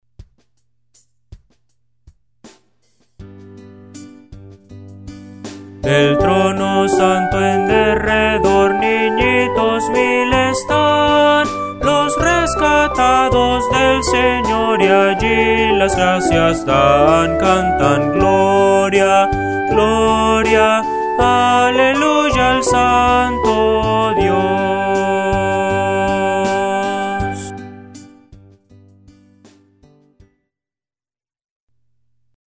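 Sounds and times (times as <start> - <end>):
Spanish Christian hymn: 5.8 - 28.1.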